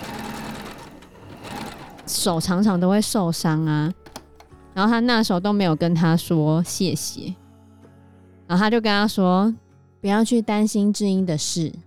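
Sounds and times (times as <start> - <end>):
treadle sewing machine running: 0.0 - 2.6
speech: 2.1 - 4.0, 4.8 - 7.4, 8.5 - 11.8.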